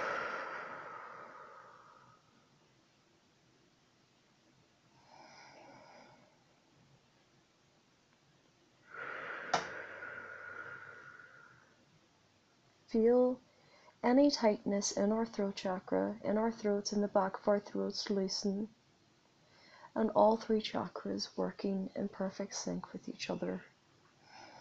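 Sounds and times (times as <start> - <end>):
deep breathing in through the nose and out through the mouth: 0.0 - 2.5, 8.8 - 11.8, 19.4 - 20.0, 24.2 - 24.5
speech: 12.9 - 13.4, 14.0 - 18.8, 20.0 - 23.7.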